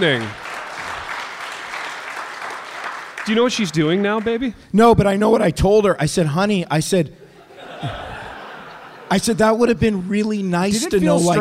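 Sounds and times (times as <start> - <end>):
speech: 0.0 - 0.4, 3.2 - 7.2, 7.8 - 8.1, 9.1 - 11.3
audience applause: 0.0 - 4.4
laughter: 7.3 - 11.3.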